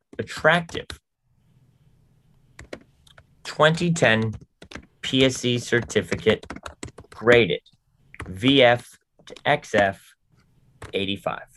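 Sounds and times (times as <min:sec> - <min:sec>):
speech: 0:00.1 - 0:01.0, 0:03.6 - 0:06.6, 0:07.2 - 0:07.7, 0:08.3 - 0:10.1, 0:10.9 - 0:11.5
typing on a computer keyboard: 0:02.6 - 0:08.6, 0:09.2 - 0:10.0, 0:10.8 - 0:11.1.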